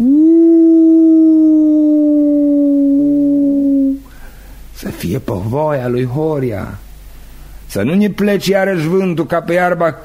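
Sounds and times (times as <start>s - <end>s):
tulnic alphorns being blown: 0.0s - 4.1s
speech: 5.0s - 6.8s, 7.7s - 10.0s.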